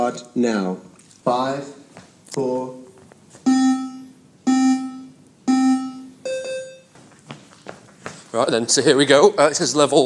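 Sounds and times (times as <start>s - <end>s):
speech: 0.1s - 2.8s, 8.4s - 10.0s
fitness test electronic beeps: 3.5s - 6.9s.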